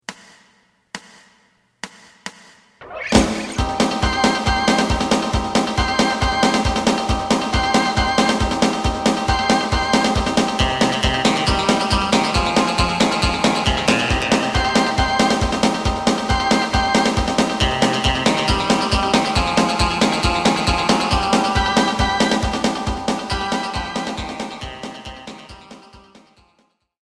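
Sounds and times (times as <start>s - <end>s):
bass: 2.9s - 25.8s.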